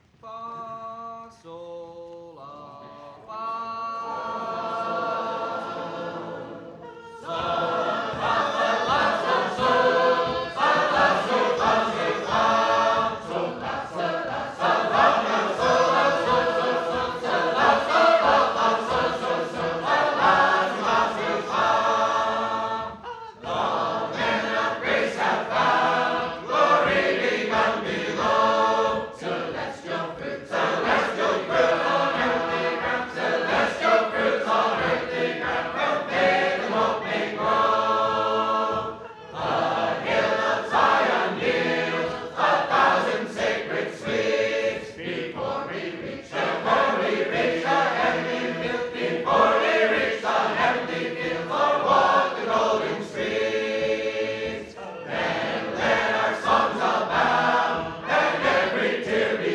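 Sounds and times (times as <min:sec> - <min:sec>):
choir singing sacred harp shape-note hymn: 0:00.0 - 0:59.5.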